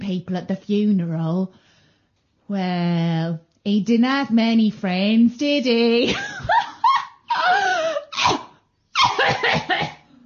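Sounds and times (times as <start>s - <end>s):
speech: 0.1s - 1.7s, 2.5s - 6.5s
woman coughing: 8.0s - 10.1s.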